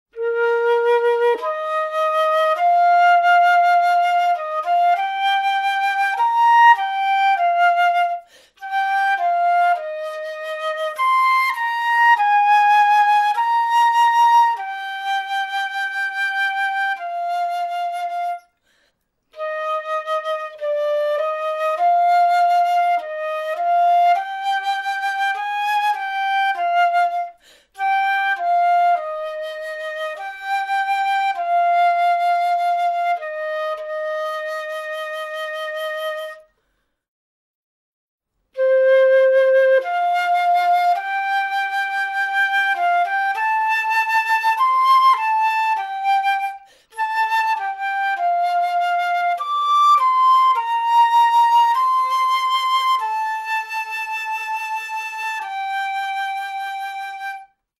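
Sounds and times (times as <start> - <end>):
flute: 0.1 - 36.7, 38.5 - 57.7.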